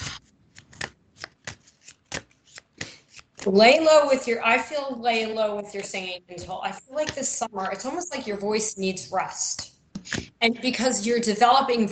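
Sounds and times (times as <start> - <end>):
playing cards being shuffled and drawn for a card reading: 0.0 - 3.6, 10.0 - 10.4
speech: 3.4 - 11.8.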